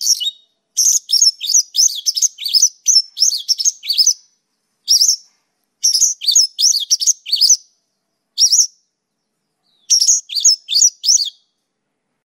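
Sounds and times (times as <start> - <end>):
Mongolian lark: 0.0 - 4.3, 4.9 - 7.7, 8.4 - 8.8, 9.6 - 11.5.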